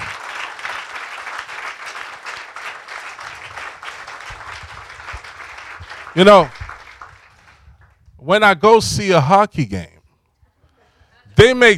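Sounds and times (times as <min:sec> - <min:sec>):
audience clapping loudly: 0:00.0 - 0:08.0
speech: 0:06.2 - 0:06.6, 0:08.3 - 0:09.9, 0:11.4 - 0:11.7.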